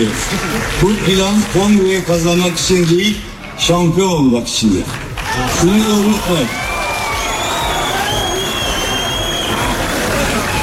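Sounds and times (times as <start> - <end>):
speech: 0.0 - 6.7
large crowd chanting and cheering: 5.2 - 10.6.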